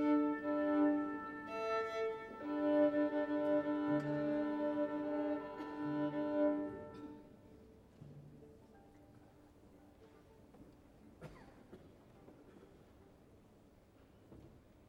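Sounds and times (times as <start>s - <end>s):
violin tuning: 0.0s - 7.2s.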